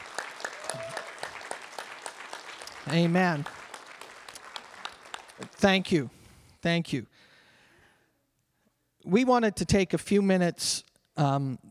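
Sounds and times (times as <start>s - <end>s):
audience clapping: 0.0s - 6.0s
speech: 2.9s - 3.6s, 5.6s - 7.2s, 9.0s - 11.6s.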